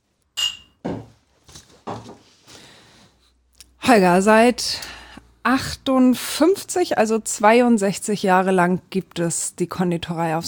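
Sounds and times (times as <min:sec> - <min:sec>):
glasses clinking in a toast: 0:00.4 - 0:00.8
speech: 0:03.9 - 0:04.9, 0:05.5 - 0:10.4.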